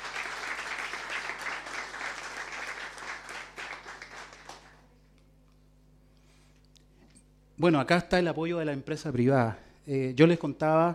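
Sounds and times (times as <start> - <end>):
crowd applause: 0.0 - 4.8
speech: 7.6 - 10.9.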